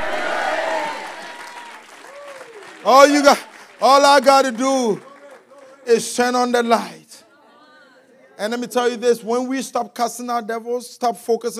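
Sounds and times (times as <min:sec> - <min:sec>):
audience shouting: 0:00.0 - 0:03.5
audience clapping: 0:00.0 - 0:06.6
speech: 0:02.8 - 0:05.1, 0:05.9 - 0:07.0, 0:08.4 - 0:11.5.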